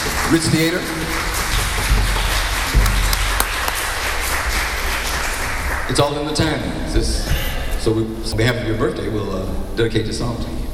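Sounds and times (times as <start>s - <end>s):
round of applause: 0.0s - 6.6s
speech: 0.3s - 1.2s, 5.9s - 10.6s.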